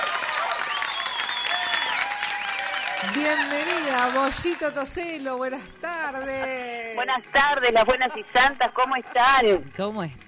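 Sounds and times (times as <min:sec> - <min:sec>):
applause sound effect: 0:00.0 - 0:05.3
speech: 0:03.0 - 0:10.2.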